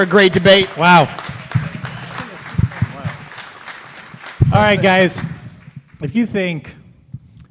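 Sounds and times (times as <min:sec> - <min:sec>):
speech: 0:00.0 - 0:01.2, 0:04.6 - 0:05.3, 0:06.0 - 0:06.8
audience applause: 0:00.0 - 0:06.0.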